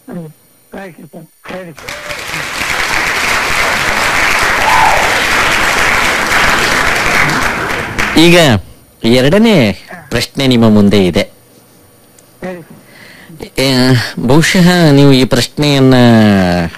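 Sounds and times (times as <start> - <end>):
speech: 0.1 - 4.1, 8.2 - 11.4, 13.6 - 16.7
audience applause at a quiz show: 1.8 - 8.3.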